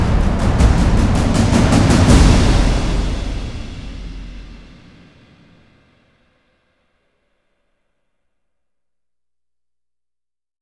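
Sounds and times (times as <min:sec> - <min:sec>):
drums: 0:00.0 - 0:06.0.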